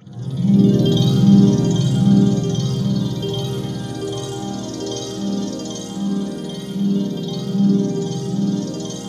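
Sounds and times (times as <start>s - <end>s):
atmospheric synth pad: 0.0s - 9.0s.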